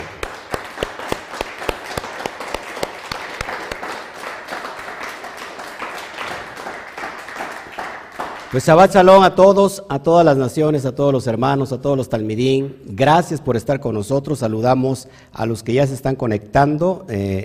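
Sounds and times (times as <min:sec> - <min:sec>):
loud applause: 0:00.0 - 0:09.1
speech: 0:08.5 - 0:17.4.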